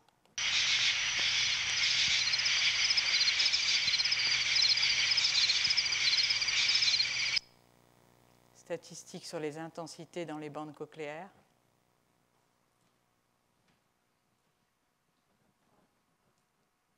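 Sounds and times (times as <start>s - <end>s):
insect sounds: 0.4s - 7.4s
speech: 8.7s - 11.4s.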